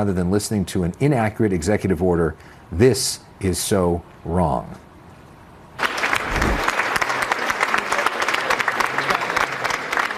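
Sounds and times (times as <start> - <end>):
speech: 0.0 - 4.8
reporters at the Justice Department applauding: 5.8 - 10.1.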